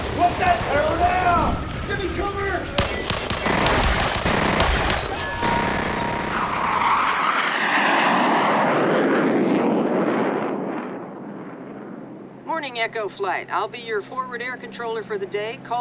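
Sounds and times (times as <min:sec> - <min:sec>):
Hellcat fighter planes flying overhead: 0:00.0 - 0:15.7
machine-gun fire: 0:02.8 - 0:07.2
speech: 0:12.8 - 0:15.7.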